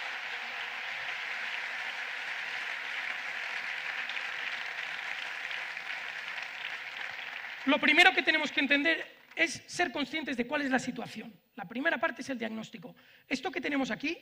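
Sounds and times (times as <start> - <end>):
audience applause: 0.0 - 8.0
speech: 7.6 - 14.2.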